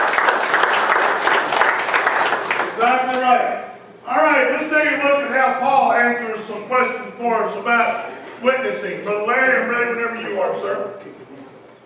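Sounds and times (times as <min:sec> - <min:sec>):
church congregation applauding during a sermon: 0:00.0 - 0:03.4
speech: 0:02.8 - 0:11.2.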